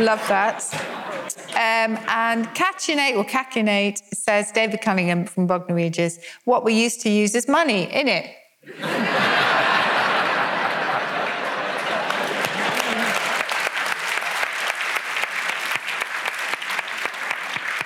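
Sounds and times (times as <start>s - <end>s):
audience laughter: 0.0s - 2.1s, 8.7s - 13.6s
speech: 0.0s - 9.7s
audience applause: 9.4s - 17.8s.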